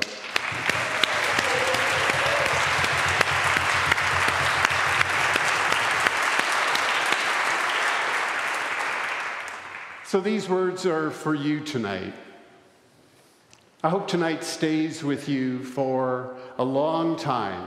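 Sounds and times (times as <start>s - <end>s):
audience applauding after baptism: 0.0s - 10.1s
speech: 10.1s - 12.3s, 13.8s - 17.6s.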